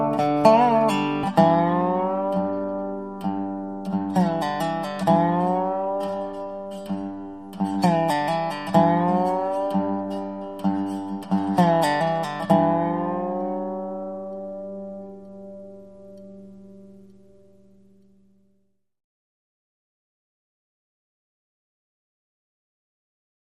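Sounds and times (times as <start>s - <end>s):
solo Dobro ballad: 0.0s - 18.4s.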